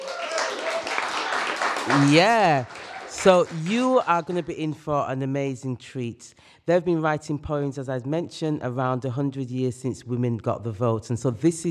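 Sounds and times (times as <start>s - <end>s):
audience applause: 0.0s - 4.4s
speech: 1.9s - 11.6s.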